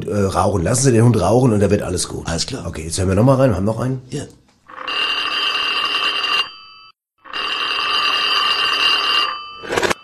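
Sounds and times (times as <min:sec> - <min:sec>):
speech: 0:00.1 - 0:04.4
telephone ringing before answering machine message: 0:04.7 - 0:10.0.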